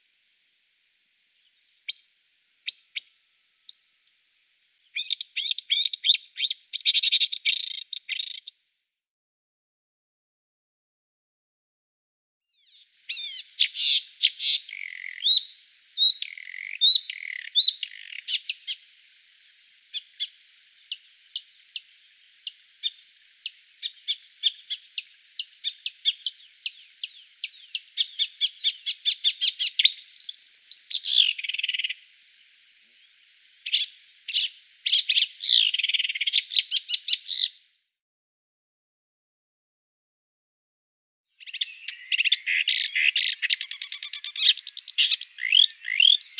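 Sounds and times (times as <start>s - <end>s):
marsh warbler song: 1.4s - 4.0s, 4.8s - 8.6s, 12.5s - 37.6s, 41.4s - 46.3s.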